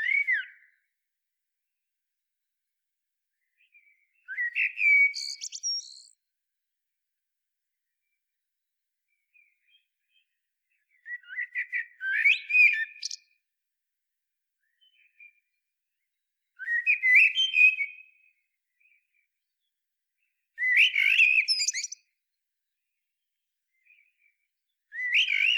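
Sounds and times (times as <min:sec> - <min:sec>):
Turdus merula common blackbird singing warbling phrases: 0:00.0 - 0:00.7, 0:03.6 - 0:06.2, 0:10.9 - 0:13.3, 0:16.6 - 0:18.0, 0:20.6 - 0:22.0, 0:24.9 - 0:25.5.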